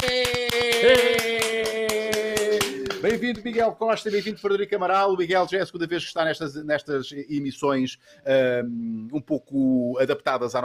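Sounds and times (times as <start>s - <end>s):
applause: 0.0s - 3.4s
speech: 3.1s - 10.6s.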